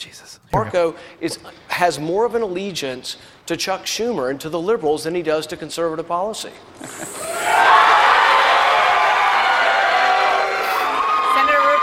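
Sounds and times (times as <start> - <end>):
speech: 0.0 - 7.8
confused crowd cheering: 7.1 - 11.8.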